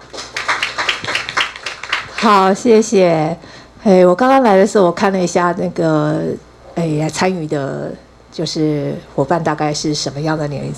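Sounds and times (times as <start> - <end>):
small group applause: 0.0 - 2.6
speech: 2.2 - 10.7.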